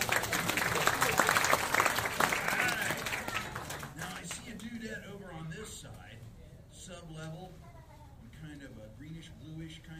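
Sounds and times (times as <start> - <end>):
round of applause: 0.0 - 4.4.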